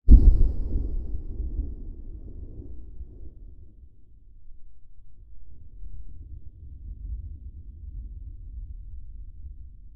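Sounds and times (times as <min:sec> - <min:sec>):
huge distant explosion: 0:00.0 - 0:04.0.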